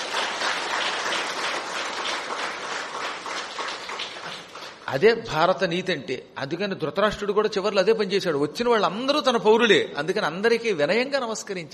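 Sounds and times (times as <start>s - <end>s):
audience applause at a spiritual discourse: 0.0s - 4.8s
speech: 4.9s - 11.7s.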